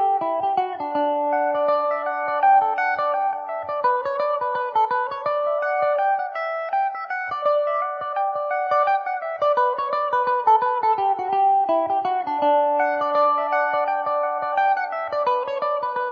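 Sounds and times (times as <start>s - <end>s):
Irish mandolin playing in D major: 0.0s - 16.1s.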